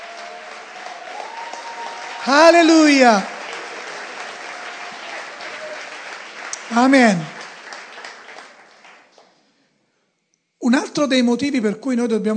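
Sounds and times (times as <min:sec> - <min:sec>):
audience applause: 0:00.0 - 0:09.4
speech: 0:02.2 - 0:03.3, 0:06.8 - 0:07.4, 0:11.0 - 0:12.3.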